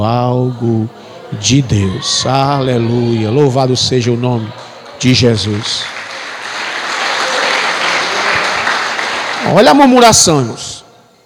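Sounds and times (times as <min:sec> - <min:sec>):
speech: 0:00.0 - 0:05.9, 0:09.4 - 0:10.8
audience applause: 0:04.0 - 0:10.4.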